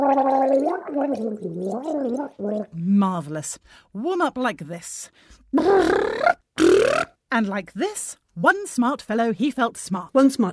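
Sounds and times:
person gargling: 0:00.0 - 0:02.8, 0:05.6 - 0:07.2
speech: 0:00.1 - 0:06.4, 0:07.3 - 0:10.5.

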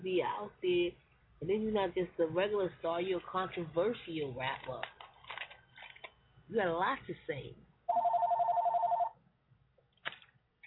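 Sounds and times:
speech: 0:00.0 - 0:05.0, 0:06.5 - 0:08.1
telephone ringing in the office: 0:07.9 - 0:09.2.

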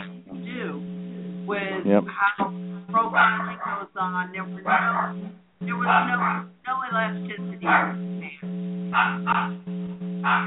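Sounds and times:
speech: 0:01.5 - 0:10.4
dog barking: 0:03.0 - 0:08.2, 0:08.9 - 0:09.6.

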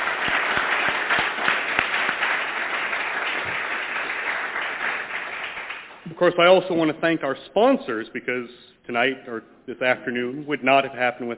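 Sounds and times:
audience applause: 0:00.0 - 0:06.0
speech: 0:06.2 - 0:11.3.

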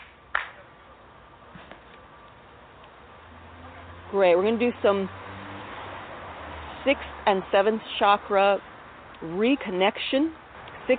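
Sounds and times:
hand clap: 0:00.0 - 0:00.6
speech: 0:04.1 - 0:05.2, 0:06.8 - 0:10.9.

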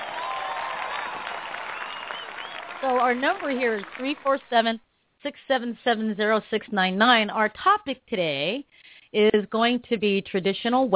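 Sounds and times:
audience applause: 0:00.0 - 0:04.6
speech: 0:02.8 - 0:10.9.

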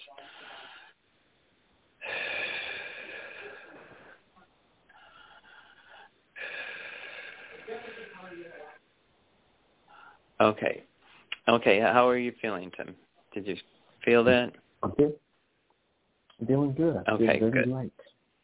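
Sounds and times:
deep breaths during a guided energy-healing meditation: 0:00.0 - 0:01.1, 0:02.0 - 0:08.8, 0:09.9 - 0:10.4
speech: 0:10.4 - 0:10.9, 0:11.5 - 0:15.2, 0:16.4 - 0:18.1.

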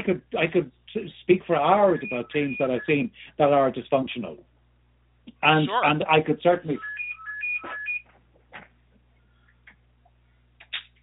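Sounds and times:
speech: 0:00.0 - 0:04.5, 0:05.3 - 0:07.0
phone beeping: 0:02.0 - 0:02.9, 0:06.8 - 0:08.1.

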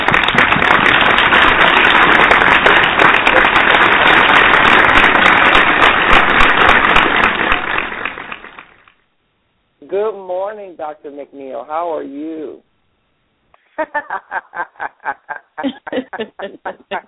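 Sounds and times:
crowd applause: 0:00.0 - 0:09.0
speech: 0:10.5 - 0:12.7, 0:13.8 - 0:17.0
laughter: 0:13.8 - 0:17.0.

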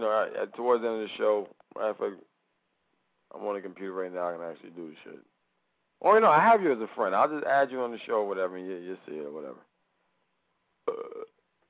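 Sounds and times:
speech: 0:00.0 - 0:02.3, 0:03.3 - 0:05.3, 0:06.0 - 0:09.7
loud throaty burp: 0:10.8 - 0:11.4.

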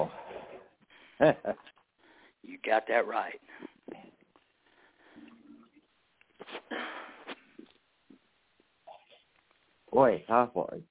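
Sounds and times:
speech: 0:01.2 - 0:01.7, 0:02.4 - 0:03.5, 0:09.9 - 0:10.9
person blowing nose: 0:06.4 - 0:07.6.

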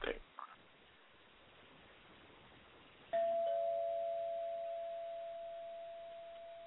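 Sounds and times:
doorbell chime: 0:03.1 - 0:06.6.

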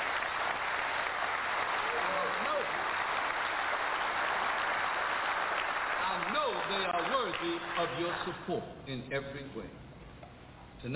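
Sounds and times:
audience applause: 0:00.0 - 0:08.3
person whooping: 0:01.8 - 0:02.8
speech: 0:07.8 - 0:09.9, 0:10.8 - 0:10.9.

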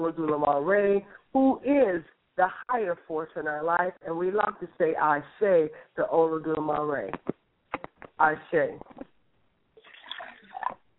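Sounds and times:
speech: 0:00.0 - 0:07.4, 0:08.2 - 0:09.1
libation liquid poured out during a spiritual ceremony: 0:09.8 - 0:10.9.

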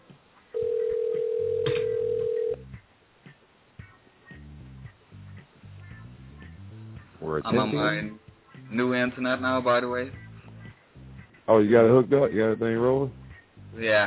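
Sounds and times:
telephone ringing: 0:00.6 - 0:02.6
speech: 0:07.4 - 0:10.2, 0:11.5 - 0:14.0.

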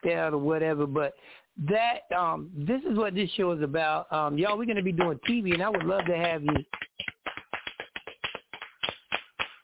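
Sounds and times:
speech: 0:00.0 - 0:06.8
hand clapping: 0:04.4 - 0:09.6.

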